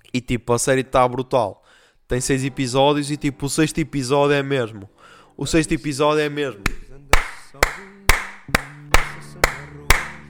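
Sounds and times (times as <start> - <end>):
speech: 0.1 - 6.8
hand clapping: 6.7 - 10.2.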